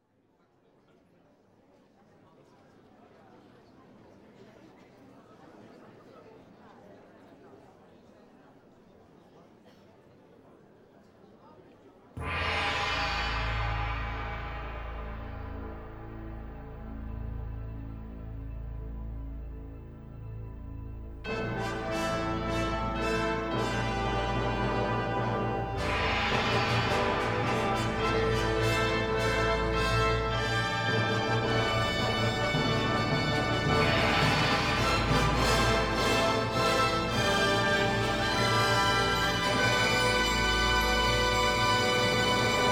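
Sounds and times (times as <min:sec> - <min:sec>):
fanfare: 0:12.2 - 0:42.6.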